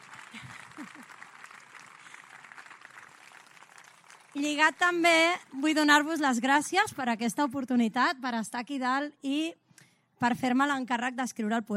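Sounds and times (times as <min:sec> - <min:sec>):
audience applause: 0:00.0 - 0:05.0
speech: 0:04.4 - 0:09.6, 0:10.2 - 0:11.7.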